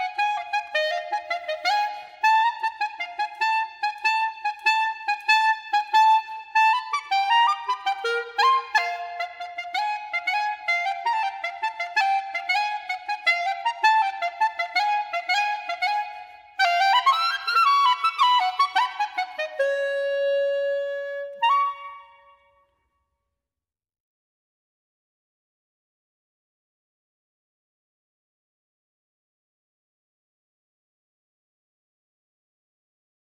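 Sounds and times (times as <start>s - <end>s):
E-flat clarinet: 0.0s - 22.8s.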